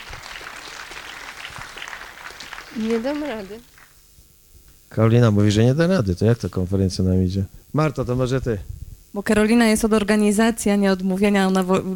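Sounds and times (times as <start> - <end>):
audience applauding: 0.0 - 4.0
speech: 2.8 - 3.7, 4.9 - 11.9.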